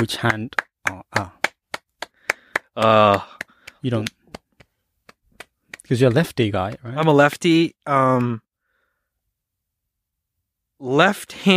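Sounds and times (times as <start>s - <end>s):
speech: 0.0s - 1.4s, 2.8s - 4.2s, 5.9s - 8.4s, 10.8s - 11.5s
hand claps: 0.0s - 7.1s.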